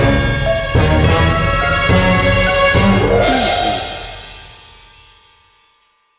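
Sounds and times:
sneaky creepy music sting bumper: 0.2s - 5.0s.

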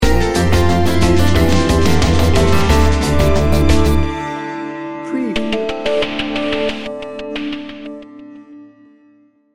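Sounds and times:
somber music sting bumper: 0.0s - 4.3s, 5.0s - 8.0s.

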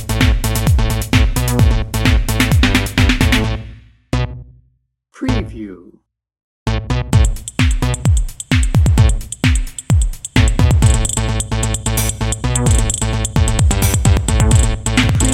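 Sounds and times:
energetic electro drum and bass music: 0.0s - 3.7s, 7.1s - 15.3s.

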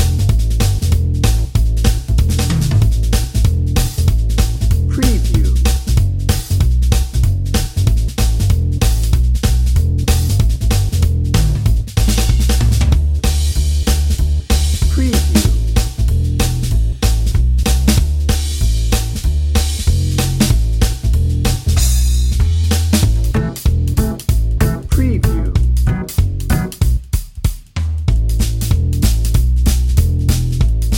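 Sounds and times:
drum and bass beat: 0.0s - 30.9s
gypsy fiddle playing jazz: 23.2s - 27.0s.

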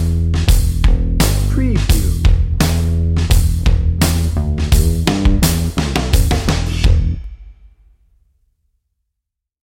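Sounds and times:
drum and bass music: 0.0s - 7.3s.

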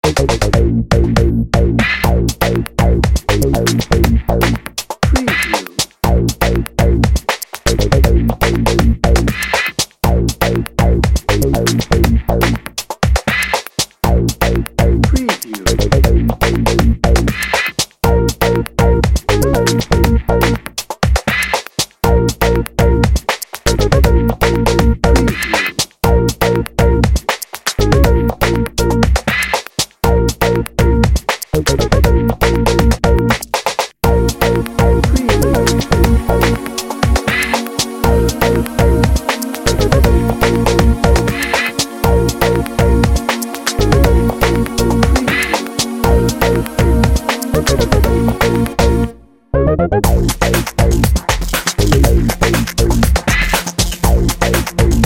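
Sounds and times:
urban electro music bed: 0.0s - 55.0s.

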